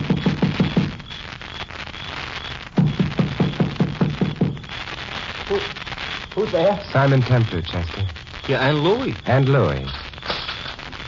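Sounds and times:
constant hiss: 0.0s - 11.0s
quick hollow knocking on a door: 2.8s - 4.6s
speech: 5.5s - 5.8s, 6.4s - 10.1s.

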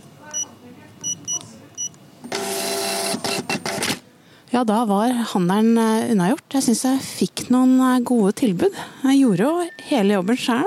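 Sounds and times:
self-service checkout machine scanning and printing: 0.3s - 4.0s
speech: 4.6s - 10.6s.

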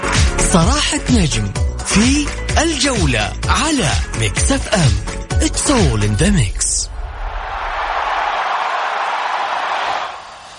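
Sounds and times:
speech: 0.5s - 6.9s
stadium crowd sound effect: 6.9s - 10.5s.

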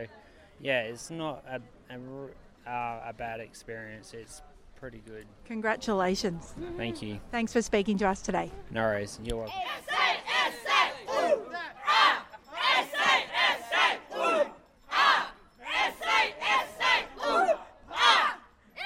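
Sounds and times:
speech: 0.0s - 10.2s
South Australia team chanting and cheering at the bowling: 9.5s - 18.4s.

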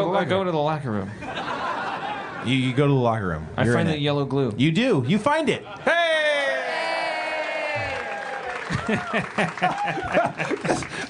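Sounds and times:
speech: 0.1s - 1.4s, 2.4s - 6.0s, 8.8s - 11.0s
audience laughter: 1.2s - 2.8s, 8.6s - 11.0s
audience clapping: 6.7s - 11.0s.

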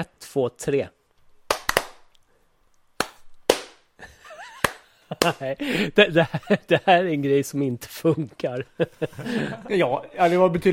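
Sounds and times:
speech: 0.0s - 1.0s, 5.1s - 10.7s
hand claps: 1.5s - 2.1s, 3.0s - 3.9s, 4.5s - 5.5s
laughter: 4.0s - 6.9s, 8.2s - 10.2s.

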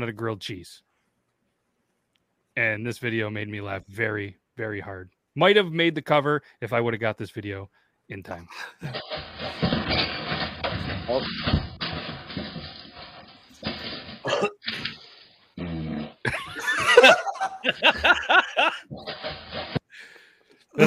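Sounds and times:
speech: 0.0s - 0.9s, 2.6s - 10.2s, 11.1s - 11.7s, 17.0s - 19.3s
fart: 15.6s - 16.4s
laughter: 16.3s - 18.9s.

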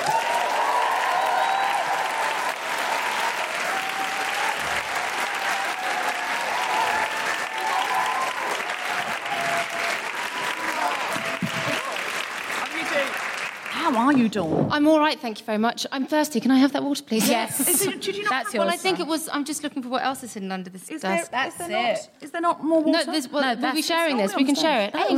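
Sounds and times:
voices and whoops: 0.0s - 12.1s
audience applause: 0.0s - 14.2s
speech: 14.2s - 25.1s.

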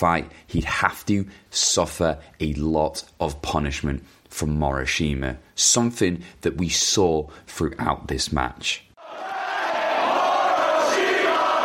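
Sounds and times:
speech: 0.0s - 9.4s
wrestling arena crowd cheering: 9.0s - 11.6s.

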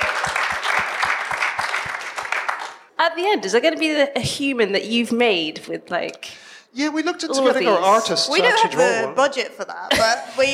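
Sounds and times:
audience applause for a contestant: 0.0s - 2.9s
speech: 3.1s - 10.5s.

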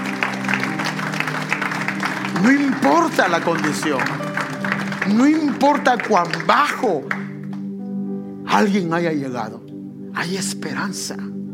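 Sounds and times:
applause: 0.0s - 7.7s
speech: 2.4s - 4.2s, 5.0s - 7.2s, 8.5s - 9.6s, 10.2s - 11.4s.

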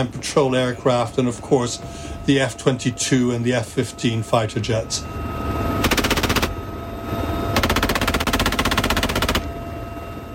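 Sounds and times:
speech: 0.0s - 5.6s
helicopter machine gun fire: 5.8s - 6.5s, 7.6s - 9.5s.

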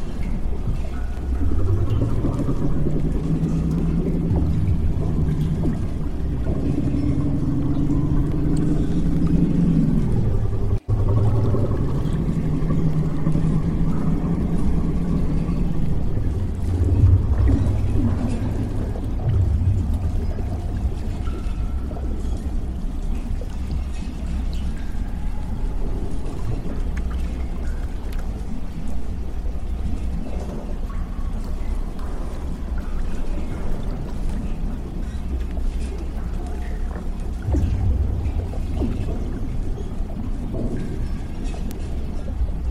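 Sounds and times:
deep groaning rumble of a damaged underwater lab: 0.0s - 42.6s
trickling watery clicks: 0.0s - 42.6s.

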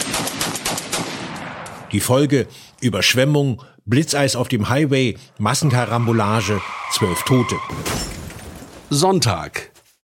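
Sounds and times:
rapid bursts of gunfire: 0.0s - 1.9s
speech: 1.9s - 8.2s, 8.9s - 9.7s.

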